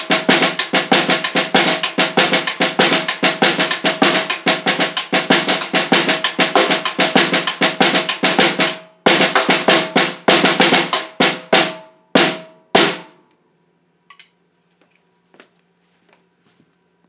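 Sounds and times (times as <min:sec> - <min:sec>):
snare drum cadence: 0:00.0 - 0:13.2.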